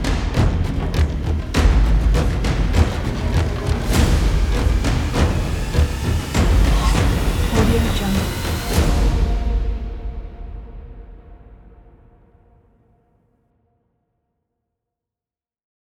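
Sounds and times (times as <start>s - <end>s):
jungle ritual percussion for a trailer: 0.0s - 12.0s.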